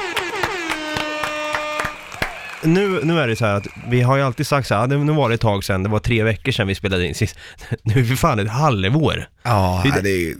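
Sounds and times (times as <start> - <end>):
horn toot: 0.0 - 2.8
hand claps: 0.0 - 3.0
speech: 2.6 - 10.3.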